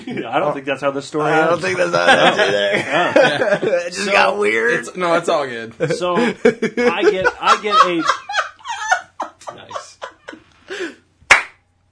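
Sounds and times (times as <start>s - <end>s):
laughter: 0.0s - 0.6s, 1.4s - 4.8s, 5.7s - 10.9s
speech: 0.0s - 8.2s
slow hand clap: 11.2s - 11.6s.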